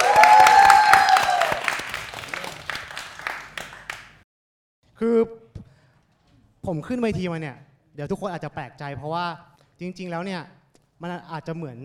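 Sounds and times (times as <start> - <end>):
audience applause for a stand-up comedian: 0.0 - 4.2
speech: 6.7 - 11.8.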